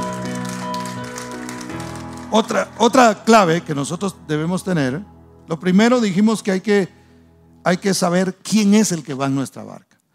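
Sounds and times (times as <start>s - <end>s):
loud crowd applause: 0.0s - 2.6s
speech: 2.3s - 7.0s, 7.6s - 9.9s.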